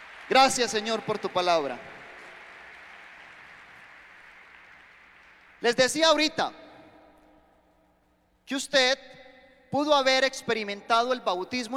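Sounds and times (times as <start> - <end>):
audience applauding: 0.0 - 6.6
speech: 0.3 - 1.9, 5.6 - 6.6, 8.5 - 11.7.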